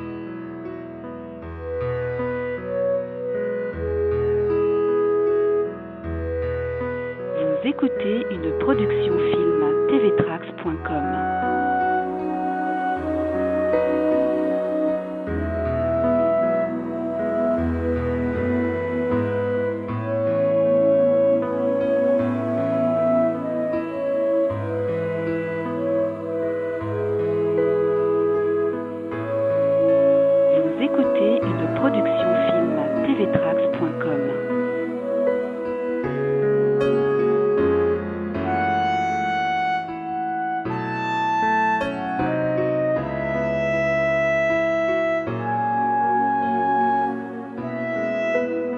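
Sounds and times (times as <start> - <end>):
Christmas carol: 0.8 - 48.7.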